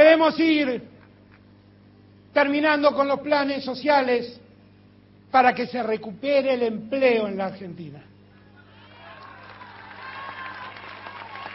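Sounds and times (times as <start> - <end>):
speech: 0.2 - 0.9, 2.3 - 4.4, 5.3 - 8.1
audience applauding: 8.9 - 11.5.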